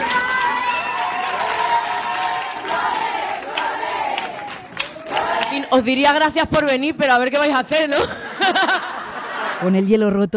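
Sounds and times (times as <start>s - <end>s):
audience clapping at screening: 0.0s - 5.7s
crowd cheering and shouting at screening: 0.0s - 6.4s
speech: 5.7s - 8.9s, 9.6s - 10.3s
laughter: 7.9s - 9.9s.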